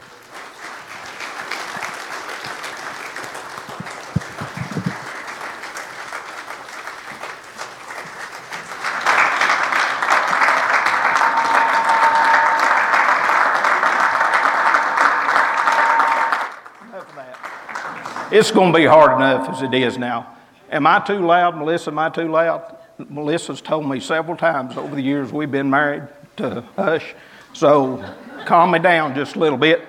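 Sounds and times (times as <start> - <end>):
audience applause for a speaker: 0.0 - 19.2
speech: 18.3 - 29.8.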